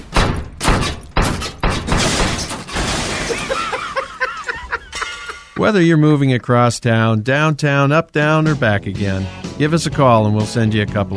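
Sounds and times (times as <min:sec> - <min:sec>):
refrigerator thudding and banging down the stairs: 0:00.0 - 0:04.0
laughter: 0:03.1 - 0:05.7
speech: 0:05.6 - 0:11.1.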